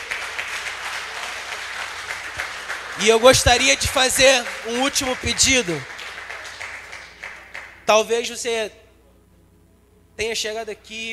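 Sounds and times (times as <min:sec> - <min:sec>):
audience applauding: 0:00.0 - 0:07.9
speech: 0:03.0 - 0:05.9, 0:07.9 - 0:08.8, 0:10.2 - 0:11.1.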